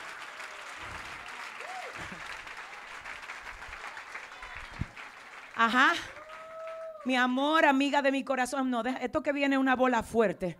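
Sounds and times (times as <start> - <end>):
loud crowd applause: 0.0 - 7.3
speech: 5.6 - 6.1, 7.0 - 10.5.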